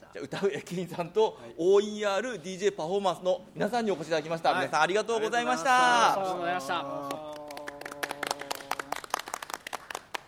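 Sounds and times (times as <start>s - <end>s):
speech: 0.2s - 7.4s
hand clapping: 7.0s - 10.2s.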